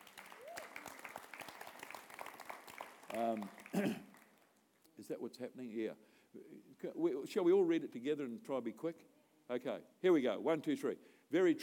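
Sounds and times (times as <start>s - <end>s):
audience hand clapping: 0.0s - 4.6s
speech: 3.1s - 4.1s, 5.0s - 11.6s.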